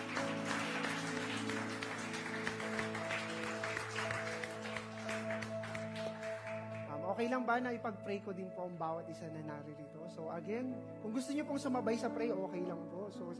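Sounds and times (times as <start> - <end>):
faint applause from a church congregation: 0.0 - 7.0
speech: 7.2 - 13.3.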